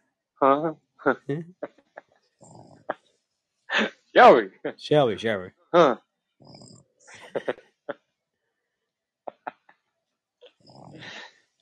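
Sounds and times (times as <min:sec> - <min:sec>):
speech: 0:00.4 - 0:01.8, 0:03.7 - 0:06.7, 0:07.4 - 0:07.6
person snoring with gurgles: 0:02.4 - 0:02.9, 0:06.4 - 0:06.8, 0:10.5 - 0:11.3.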